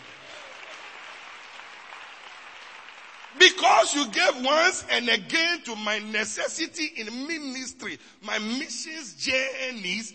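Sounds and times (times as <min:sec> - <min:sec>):
audience clapping: 0:00.0 - 0:04.7
speech: 0:03.4 - 0:10.1.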